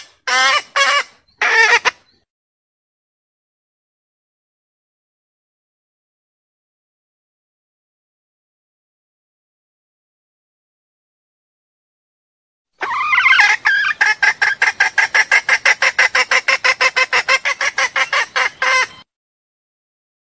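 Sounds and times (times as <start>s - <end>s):
junglefowl clucking: 0.0s - 2.0s, 12.8s - 19.0s.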